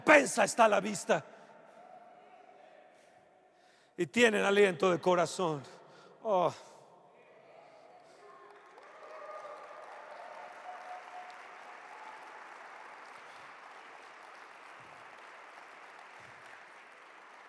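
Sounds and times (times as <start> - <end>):
speech: 0.0 - 1.4, 4.0 - 6.7
audience applause: 8.1 - 17.4.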